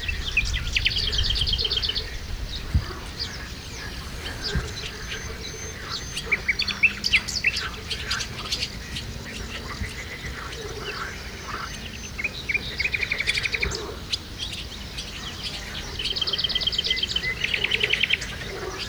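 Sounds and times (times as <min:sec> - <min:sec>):
birds at the Hortobágy fishponds: 0:00.0 - 0:18.8
frogs at the Hortobágy fishponds: 0:00.0 - 0:18.8.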